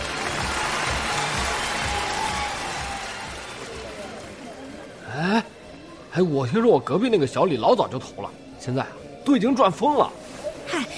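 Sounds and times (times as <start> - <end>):
crowd applause: 0.0 - 5.2
speech: 6.2 - 10.8.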